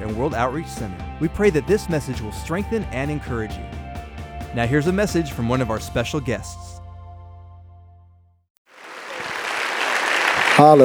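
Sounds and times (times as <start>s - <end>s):
speech: 0.2s - 3.8s, 4.5s - 6.7s, 10.6s - 10.8s
audience applause: 8.7s - 10.8s.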